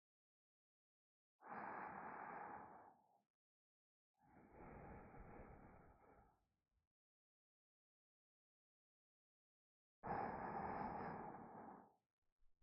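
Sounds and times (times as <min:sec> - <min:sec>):
sleeping breath in the left ear: 0:01.4 - 0:03.0, 0:04.2 - 0:06.3, 0:10.0 - 0:12.0.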